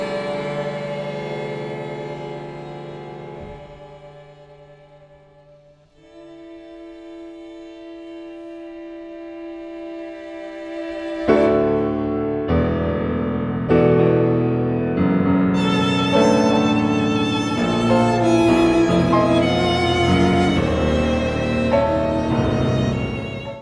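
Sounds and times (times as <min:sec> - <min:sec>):
cello in a piano trio: 0:00.0 - 0:23.6
piano in a piano trio: 0:00.0 - 0:23.6
violin in a piano trio: 0:00.0 - 0:23.6.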